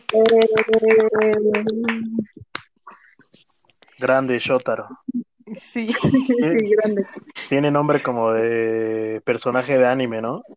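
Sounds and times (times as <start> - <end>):
hand clapping: 0.0 - 3.0
speech: 0.1 - 2.5, 4.0 - 10.5.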